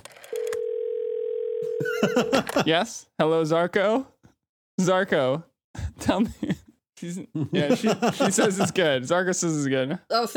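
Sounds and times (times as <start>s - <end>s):
telephone dial tone: 0.2s - 1.8s
laughter: 1.8s - 2.9s, 7.3s - 8.9s
speech: 2.0s - 4.1s, 4.8s - 5.5s, 6.1s - 10.3s.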